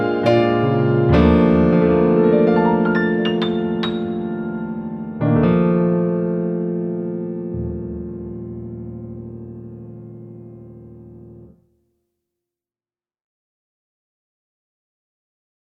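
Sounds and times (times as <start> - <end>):
jazz cover: 0.0 - 11.4.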